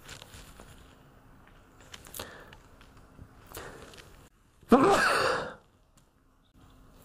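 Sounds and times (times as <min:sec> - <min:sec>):
person sneezing: 0:04.7 - 0:05.6.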